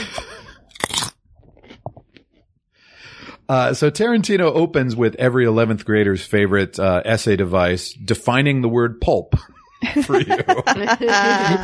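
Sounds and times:
laughter: 0.0 - 0.6, 9.3 - 11.6
crunching a chip: 0.7 - 2.3
speech: 3.5 - 11.6.

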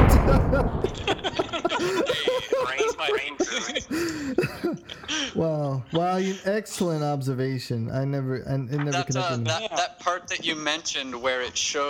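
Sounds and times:
gunshot in a film: 0.0 - 2.2
men talking and chuckling: 0.0 - 6.6
speech: 5.8 - 11.8.

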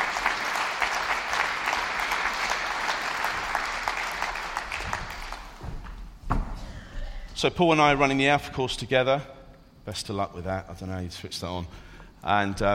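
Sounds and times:
ripple of audience applause: 0.0 - 5.6
speech: 7.4 - 12.7.

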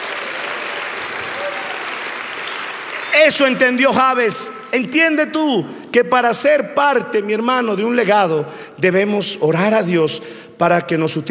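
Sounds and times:
audience applause: 0.0 - 4.2
speech: 3.2 - 11.2.

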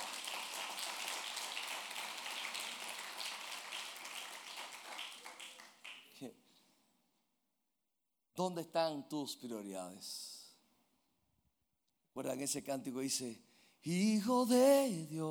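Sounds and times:
audience applause: 0.0 - 6.1
speech: 6.2 - 6.4, 8.4 - 10.3, 12.2 - 15.2.

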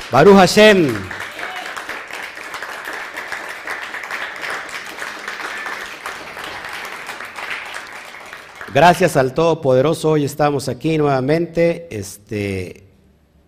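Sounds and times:
audience applause: 0.0 - 9.0
speech: 0.1 - 1.2, 8.7 - 12.9.

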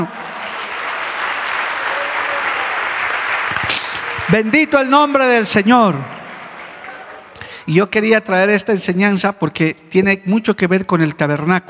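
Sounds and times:
speech: 0.0 - 0.2, 4.3 - 6.2, 7.7 - 11.6
crowd applause: 0.0 - 7.4.

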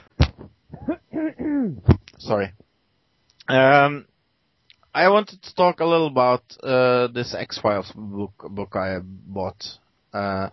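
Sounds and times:
person coughing: 0.2 - 2.0
soft voiced throat sounds and murmurs: 0.7 - 2.2
speech: 1.2 - 2.6, 3.5 - 4.1, 5.0 - 10.5.

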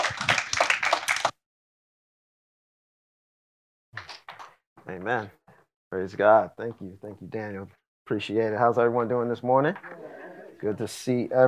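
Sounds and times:
round of applause: 0.0 - 1.4
speech: 4.9 - 11.4.

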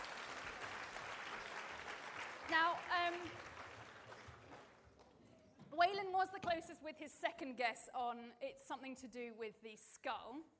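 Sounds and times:
audience applause for volunteers: 0.0 - 5.2
speech: 2.5 - 3.5, 5.8 - 10.5.

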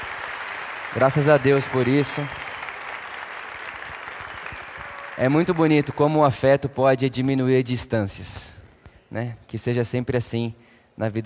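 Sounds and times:
audience applause: 0.0 - 6.4
speech: 0.9 - 2.4, 5.2 - 11.2.

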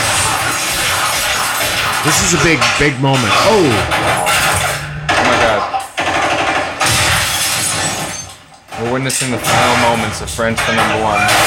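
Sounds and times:
video game gunfire: 0.0 - 8.0
speech: 2.0 - 4.3, 8.8 - 11.4.

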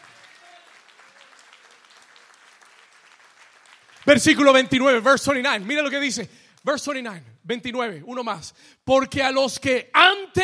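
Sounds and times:
audience applauding: 0.0 - 6.1
speech: 4.0 - 10.4.

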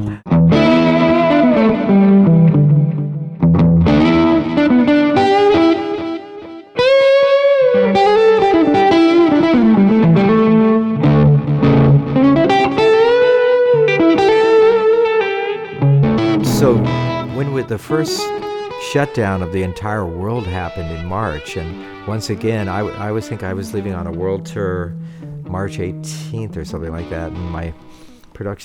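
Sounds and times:
Les Paul electric guitar through heavy distortion: 0.0 - 19.0
speech: 17.9 - 28.6.

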